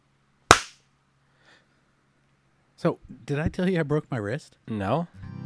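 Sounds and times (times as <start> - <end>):
hand clap: 0.5 - 0.8
speech: 2.8 - 5.2.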